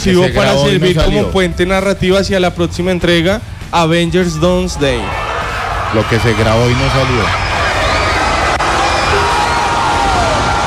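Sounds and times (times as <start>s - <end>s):
speech: 0.0s - 5.2s, 5.9s - 7.5s
cinema audience cheering and applauding: 4.7s - 10.6s.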